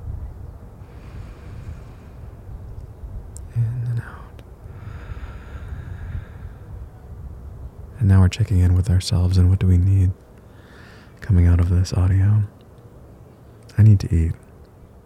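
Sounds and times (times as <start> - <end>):
breathing out imitating wind sound: 0.8 - 2.5, 4.1 - 6.9, 10.5 - 11.2
speech: 8.0 - 10.2, 11.3 - 12.6, 13.8 - 14.4.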